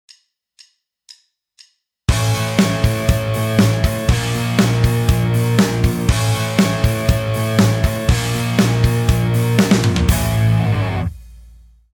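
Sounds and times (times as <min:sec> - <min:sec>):
backing music: 0:02.1 - 0:11.6.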